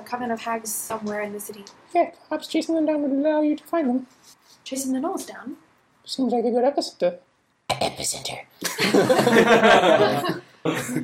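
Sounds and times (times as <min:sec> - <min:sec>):
speech: 0:00.1 - 0:11.0
laughter: 0:08.6 - 0:11.0
person coughing from a tickle in the throat: 0:10.2 - 0:11.0.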